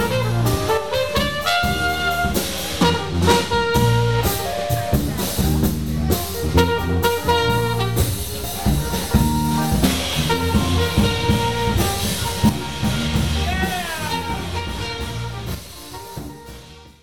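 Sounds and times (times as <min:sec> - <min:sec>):
afterhours jazz music: 0:00.0 - 0:16.9.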